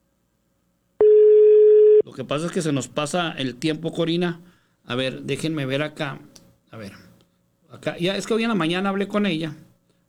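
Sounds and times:
telephone line tone while dialling an unanswered call: 1.0 - 2.0
speech: 2.0 - 7.1, 7.7 - 9.7.

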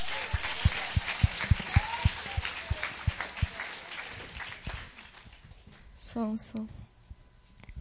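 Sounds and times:
audience applauding: 0.0 - 5.4
speech: 6.2 - 6.8.

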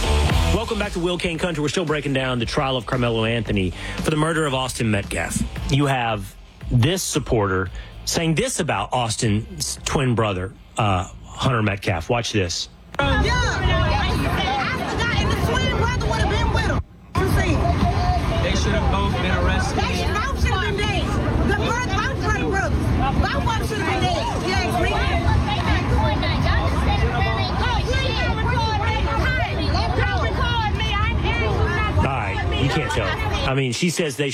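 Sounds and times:
speech: 0.6 - 13.7, 33.0 - 34.3
crowd yelling: 13.0 - 33.5.

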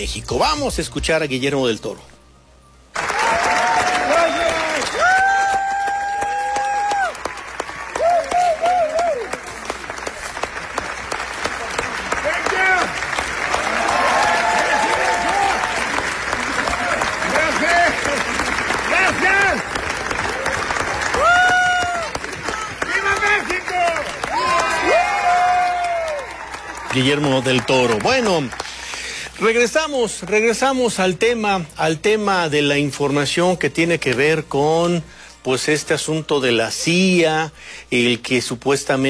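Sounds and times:
speech: 0.0 - 2.1, 27.0 - 28.6, 29.4 - 39.0
large crowd applauding: 2.9 - 30.7
cheers and whoops: 3.0 - 9.6, 13.5 - 18.2, 18.9 - 28.0.

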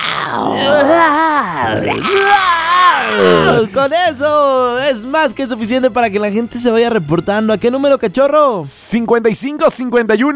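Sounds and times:
person imitating a dinosaur roar: 0.0 - 3.8
speech: 3.2 - 10.3.

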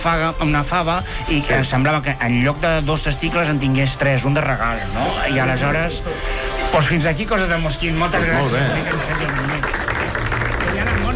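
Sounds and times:
speech: 0.0 - 9.9
audience applause: 8.2 - 11.1.

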